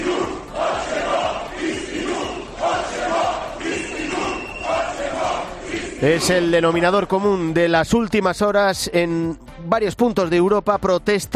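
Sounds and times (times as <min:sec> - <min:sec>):
crowd of protesters chanting in street in Zagreb: 0:00.0 - 0:06.8
speech: 0:06.0 - 0:11.3.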